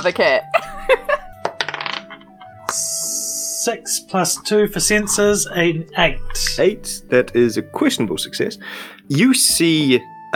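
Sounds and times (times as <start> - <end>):
speech: 0.0 - 1.2, 3.6 - 10.3
laughter: 0.5 - 1.4
dice rolling: 1.4 - 2.2.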